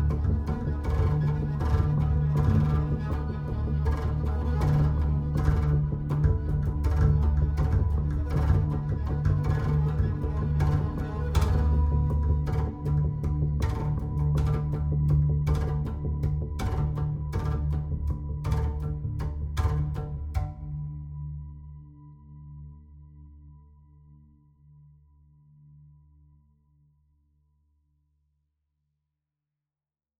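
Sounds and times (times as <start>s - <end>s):
improvised music without double bass: 0.0s - 21.0s.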